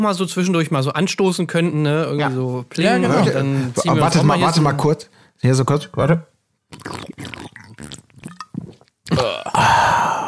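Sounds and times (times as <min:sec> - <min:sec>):
speech: 0:00.0 - 0:07.4
person gulping cold beer: 0:06.7 - 0:10.2
satisfied exhale: 0:09.5 - 0:10.2.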